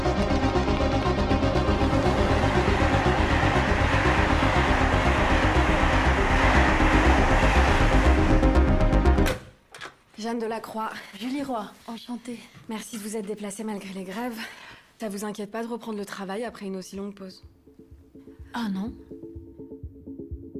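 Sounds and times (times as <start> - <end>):
train rumbling at a station platform on track 14: 0.1 - 9.3
speech: 10.3 - 17.6, 18.5 - 19.2.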